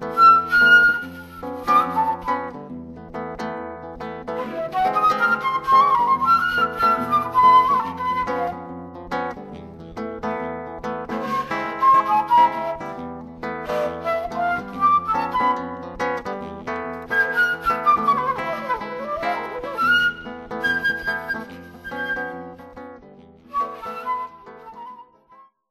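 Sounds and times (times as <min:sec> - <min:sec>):
flute sketches: 0:00.0 - 0:02.6, 0:04.4 - 0:08.8, 0:11.2 - 0:16.0, 0:17.1 - 0:22.8, 0:23.5 - 0:25.5.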